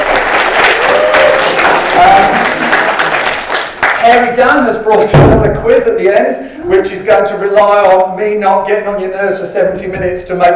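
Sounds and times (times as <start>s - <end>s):
audience applause: 0.0s - 4.2s
speech: 4.1s - 10.5s.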